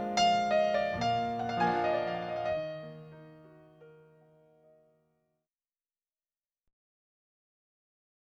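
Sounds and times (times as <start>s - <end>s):
solo piano: 0.0s - 5.1s.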